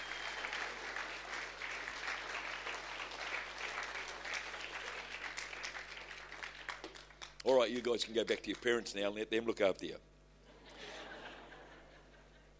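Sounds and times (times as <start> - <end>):
audience applause: 0.0 - 7.4
speech: 7.4 - 10.1
laughter: 10.5 - 12.5.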